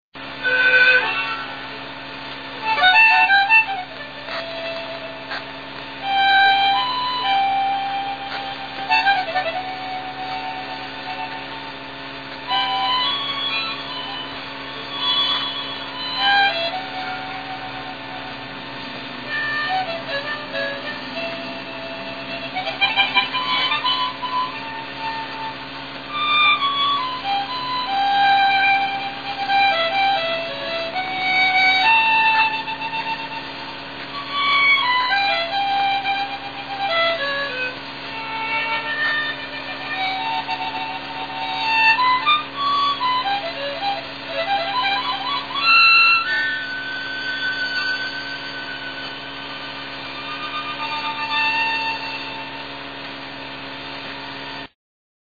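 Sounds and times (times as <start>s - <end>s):
gaita bagpipe: 0.2s - 53.8s.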